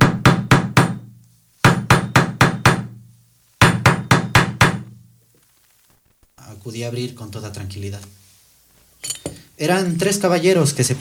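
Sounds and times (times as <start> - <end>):
knocking on a wooden door: 0.0 - 1.0, 1.7 - 3.0, 3.6 - 5.0
speech: 6.4 - 8.2, 9.6 - 10.9.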